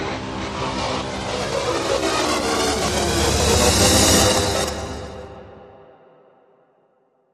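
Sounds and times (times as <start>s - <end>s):
riser sweep: 0.2s - 5.7s.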